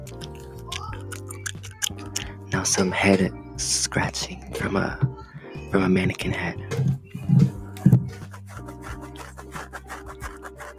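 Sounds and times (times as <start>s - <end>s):
ASMR gum chewing: 0.0s - 2.5s, 7.2s - 10.7s
speech: 0.1s - 0.8s, 2.6s - 5.1s, 5.7s - 7.0s.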